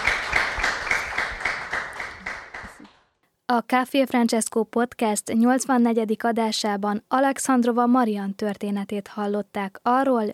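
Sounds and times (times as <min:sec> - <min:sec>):
audience applause: 0:00.0 - 0:02.9
speech: 0:03.5 - 0:10.3.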